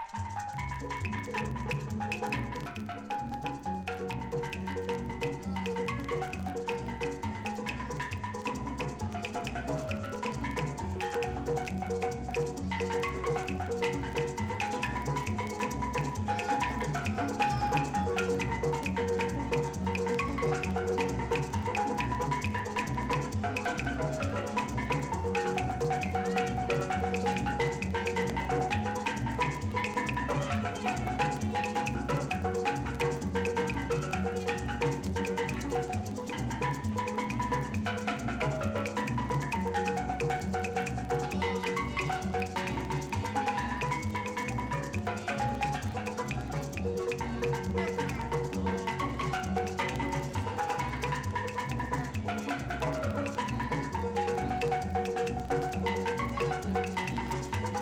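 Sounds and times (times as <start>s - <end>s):
steel drum: 0.1s - 57.8s.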